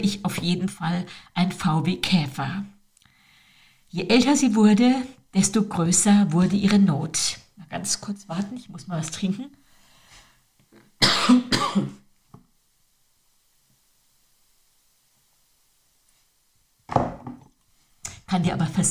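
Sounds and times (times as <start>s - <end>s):
speech: 0.0s - 2.8s, 3.9s - 9.6s, 11.2s - 11.9s, 18.3s - 18.8s
loud, harsh coughs: 11.0s - 12.0s.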